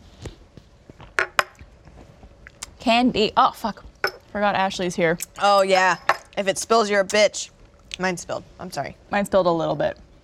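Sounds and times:
speech: 2.8 - 10.0
shot glasses clinking together in a toast: 4.0 - 4.3, 5.8 - 6.4.

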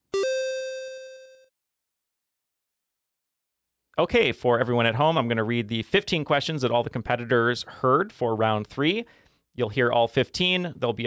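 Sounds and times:
beep tone: 0.0 - 1.5
speech: 4.0 - 11.0.

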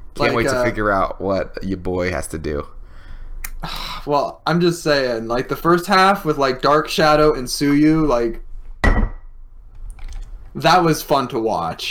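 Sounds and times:
speech: 0.2 - 2.8, 3.6 - 8.5, 10.6 - 11.8
glass of water banging off a coaster: 8.8 - 9.4.

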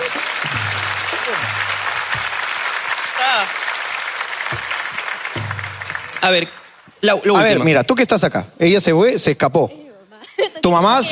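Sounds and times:
audience clapping: 0.0 - 7.0
speech: 6.2 - 9.8, 10.6 - 11.0.

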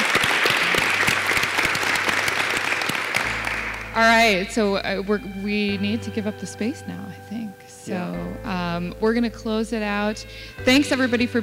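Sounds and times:
audience applause: 0.0 - 4.4
speech: 4.0 - 11.4.

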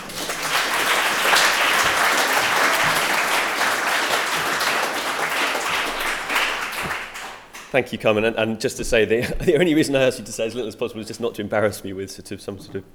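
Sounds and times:
audience applause at Conway Hall: 0.0 - 7.7
speech: 7.7 - 12.9.

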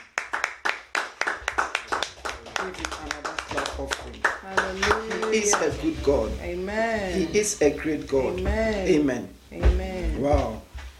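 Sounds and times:
group clapping: 0.0 - 6.3
speech: 2.6 - 10.6.

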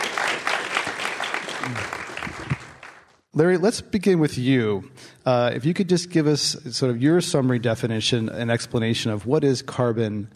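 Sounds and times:
audience applause welcoming panelists at Commonwealth Club: 0.0 - 3.2
speech: 3.4 - 10.3.

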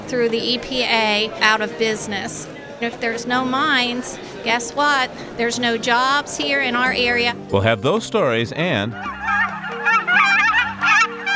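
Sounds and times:
speech: 0.1 - 9.3
seasonal bird honking calls: 8.9 - 11.3.

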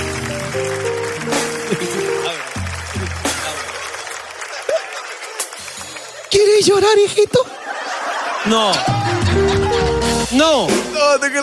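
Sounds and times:
loud applause: 0.0 - 7.6
laughter: 1.4 - 10.3
speech: 6.6 - 7.6, 8.4 - 9.1, 10.3 - 11.4.

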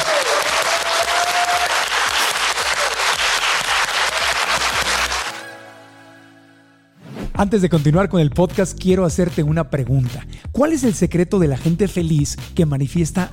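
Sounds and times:
audience applause: 0.0 - 5.4
speech: 7.4 - 13.3.

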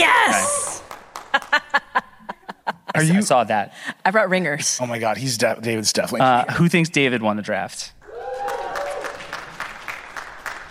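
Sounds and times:
small audience clapping: 0.4 - 2.3, 8.1 - 10.6
laughter: 1.3 - 3.3
speech: 3.0 - 8.0.

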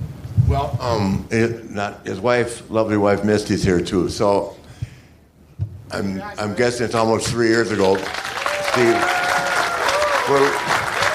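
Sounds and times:
speech: 0.5 - 4.6, 5.9 - 9.2, 10.3 - 10.8
crowd applause: 7.0 - 11.1.

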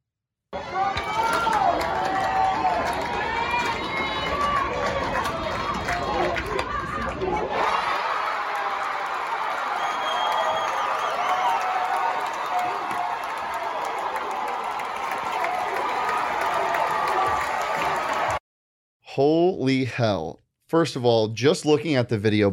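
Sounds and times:
crowd noise at a softball game: 0.6 - 18.4
speech: 19.2 - 22.5.

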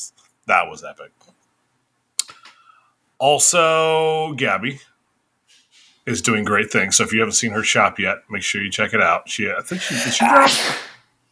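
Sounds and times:
speech: 0.0 - 1.4, 3.2 - 4.9, 6.1 - 10.9
sneeze: 9.7 - 11.0.

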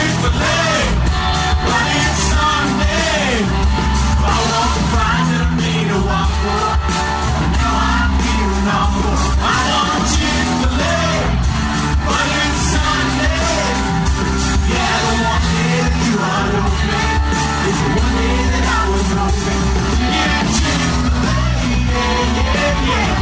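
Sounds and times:
concert crowd yelling, whooping and singing along: 0.0 - 23.1
live concert band playing: 0.0 - 23.1.

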